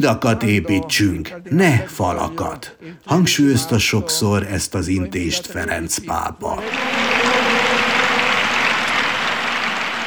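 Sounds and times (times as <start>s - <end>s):
speech: 0.0s - 7.9s
large crowd applauding in a square: 6.6s - 10.0s.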